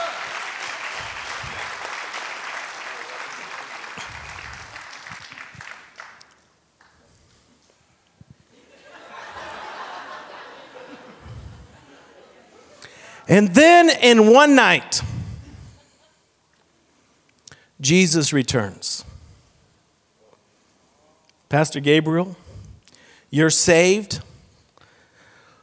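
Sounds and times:
audience clapping: 0.0 - 7.1
laughter: 8.6 - 12.7, 15.6 - 16.2
speech: 13.3 - 15.1, 17.8 - 19.1, 21.5 - 22.4, 23.3 - 24.3.

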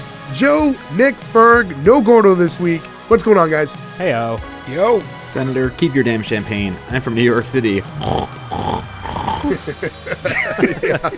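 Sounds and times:
speech: 0.3 - 8.3, 9.4 - 11.1
person imitating pig grunts, snorts and squeals: 8.0 - 10.3
laughter: 9.4 - 11.1.

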